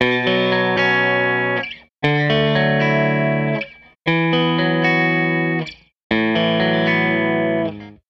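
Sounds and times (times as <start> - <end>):
Telecaster electric guitar loop: 0.0 - 8.0.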